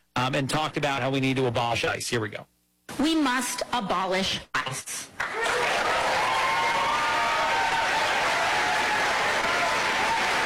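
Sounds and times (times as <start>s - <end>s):
speech: 0.2s - 5.2s
crowd applauding at rally: 5.2s - 10.4s.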